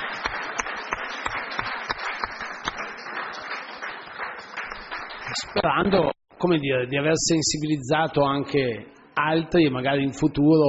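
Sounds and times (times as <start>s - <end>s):
applause: 0.0s - 6.2s
speech: 5.4s - 10.6s.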